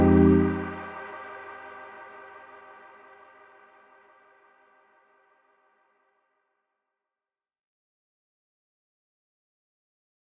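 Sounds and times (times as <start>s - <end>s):
polyphonic synth: 0.0s - 0.9s.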